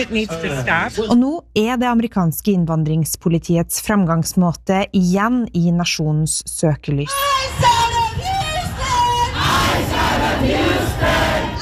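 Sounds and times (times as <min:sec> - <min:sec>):
speech: 0:00.0 - 0:07.6
protesters chanting: 0:07.4 - 0:11.5.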